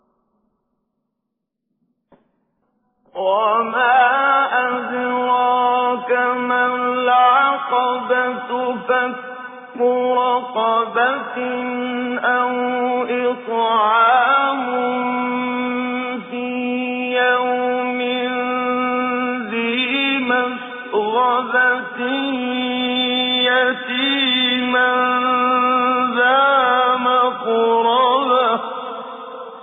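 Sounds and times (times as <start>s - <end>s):
person reciting Quran with tajweed: 3.1s - 29.6s.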